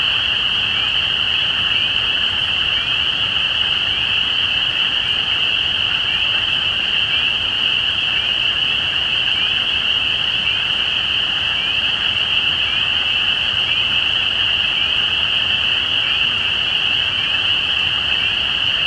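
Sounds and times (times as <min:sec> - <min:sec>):
spring peepers peeping in chorus: 0:00.0 - 0:18.8.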